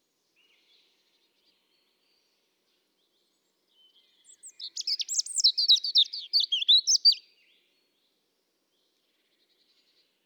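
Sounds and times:
European robin song: 0:04.4 - 0:07.2.

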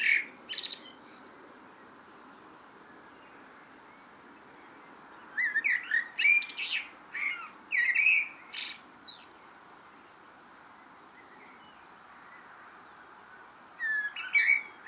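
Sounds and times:
common blackbird singing: 0:00.0 - 0:01.6, 0:02.8 - 0:09.4, 0:13.8 - 0:14.8.

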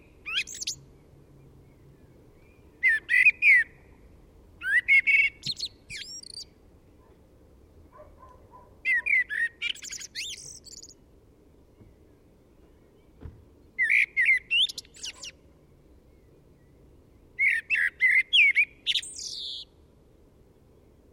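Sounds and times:
common blackbird song: 0:00.0 - 0:07.2, 0:07.9 - 0:11.0, 0:11.6 - 0:19.8
soft knock: 0:13.2 - 0:13.4.

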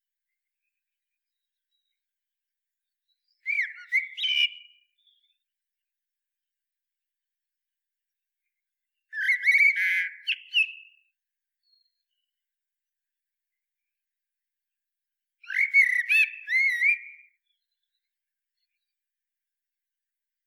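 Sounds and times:
common blackbird singing: 0:03.4 - 0:05.4, 0:09.1 - 0:11.0, 0:15.4 - 0:17.3.

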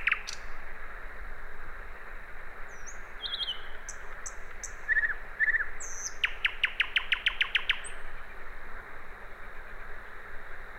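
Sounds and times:
common nightingale whistles and repeated notes: 0:00.0 - 0:00.7, 0:01.9 - 0:08.4.

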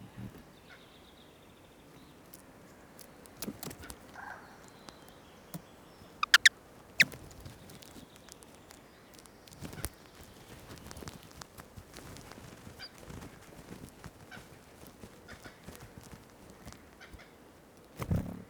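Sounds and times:
Eurasian wren Troglodytes troglodytes giving hard clicking ticks: 0:00.2 - 0:18.4.

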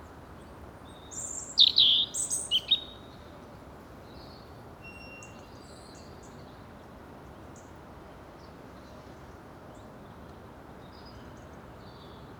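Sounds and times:
European robin singing: 0:01.1 - 0:03.1.

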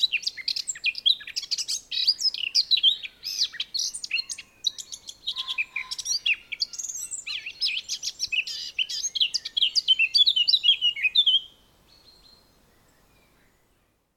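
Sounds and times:
Eurasian blackcap singing: 0:00.0 - 0:12.5.

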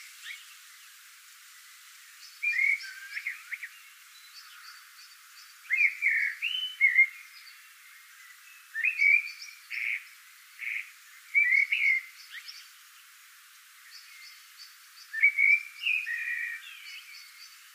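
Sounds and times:
Eurasian blackbird fluty whistling song: 0:02.2 - 0:10.0, 0:10.6 - 0:12.7, 0:13.8 - 0:17.6.

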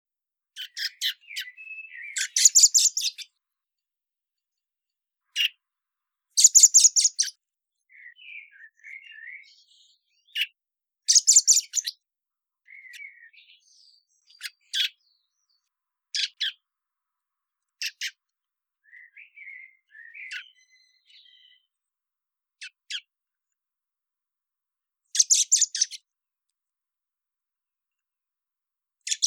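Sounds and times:
common blackbird song: 0:00.5 - 0:03.6, 0:04.4 - 0:16.9, 0:17.5 - 0:22.0, 0:22.6 - 0:23.2, 0:25.1 - 0:26.1, 0:29.0 - 0:29.2.

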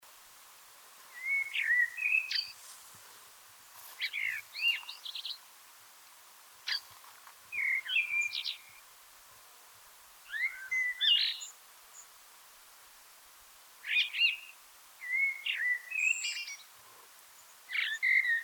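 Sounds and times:
common blackbird song: 0:01.1 - 0:02.6, 0:04.0 - 0:05.4, 0:07.5 - 0:08.8, 0:10.3 - 0:11.5, 0:13.9 - 0:16.7, 0:17.7 - 0:18.4.

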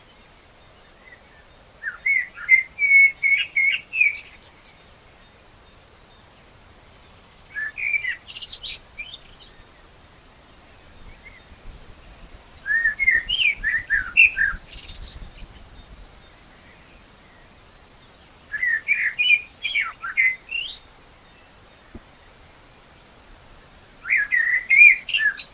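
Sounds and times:
common blackbird song: 0:00.1 - 0:05.4, 0:07.5 - 0:09.8, 0:12.6 - 0:22.4, 0:24.0 - 0:25.5.

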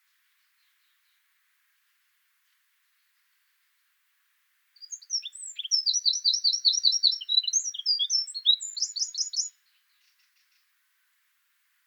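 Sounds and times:
Eurasian wren song: 0:04.8 - 0:10.3.

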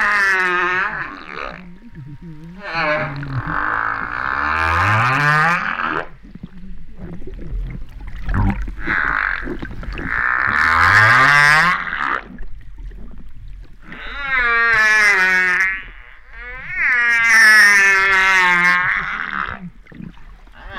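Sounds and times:
humpback whale vocalizing at La Réunion: 0:00.0 - 0:13.2, 0:13.8 - 0:20.7.

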